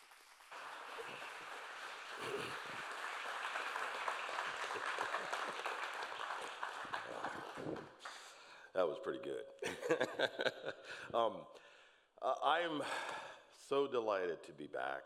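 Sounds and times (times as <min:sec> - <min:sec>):
audience applause welcoming a speaker at Calvary Chapel South in Kent, Washington: 0:00.0 - 0:08.3
speech: 0:08.8 - 0:15.0
laughter: 0:09.6 - 0:11.0.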